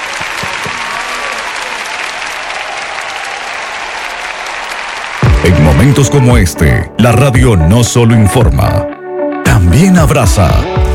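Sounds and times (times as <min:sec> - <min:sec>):
crowd applause: 0:00.0 - 0:06.5
speech: 0:05.4 - 0:08.9, 0:09.8 - 0:10.9.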